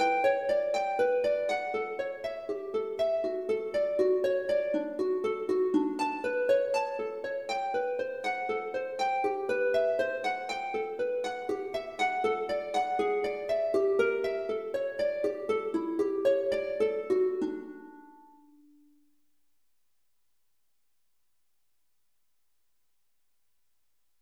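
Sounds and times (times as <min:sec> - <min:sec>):
lute: 0:00.0 - 0:18.7.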